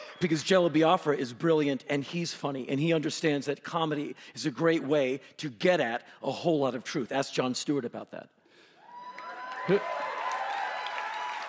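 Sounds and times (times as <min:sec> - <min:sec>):
live audience cheering: 0:00.0 - 0:00.8, 0:08.9 - 0:11.4
speech: 0:00.2 - 0:08.4, 0:09.6 - 0:10.1.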